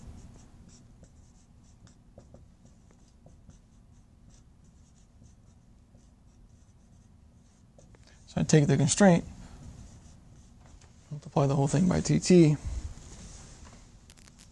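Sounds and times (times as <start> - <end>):
pen or chalk writing out a math equation: 0.2 - 8.0
speech: 8.3 - 9.4, 11.4 - 12.7.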